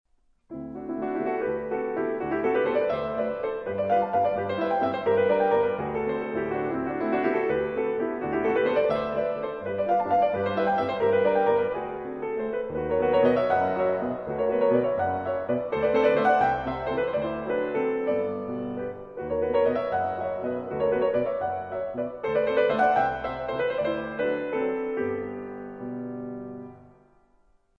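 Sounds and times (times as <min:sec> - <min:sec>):
waltz music: 0:00.6 - 0:27.0.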